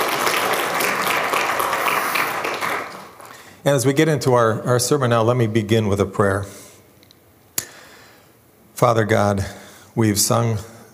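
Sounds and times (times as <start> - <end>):
audience clapping hands: 0.0 - 3.4
speech: 3.6 - 6.6, 8.8 - 10.9.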